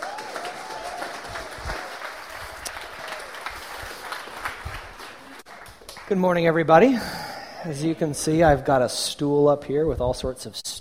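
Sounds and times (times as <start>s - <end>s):
audience applause welcoming a speaker before a talk on the Psalms: 0.0s - 6.2s
speech: 6.1s - 10.7s.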